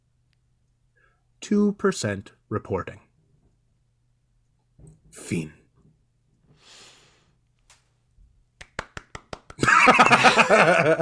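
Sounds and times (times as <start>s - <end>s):
speech: 1.4s - 3.0s, 5.1s - 5.6s, 9.8s - 10.9s
tepid applause: 8.6s - 9.8s
burst of laughter: 9.6s - 10.9s.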